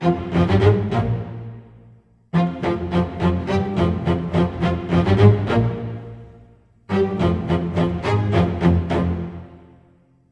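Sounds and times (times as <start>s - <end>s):
orchestra low strings in F minor: 0.0s - 10.0s.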